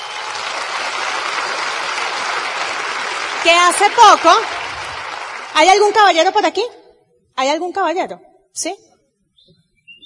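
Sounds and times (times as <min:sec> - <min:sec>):
crowd applause: 0:00.0 - 0:06.0
speech: 0:03.4 - 0:04.6, 0:05.5 - 0:06.8, 0:07.4 - 0:08.9.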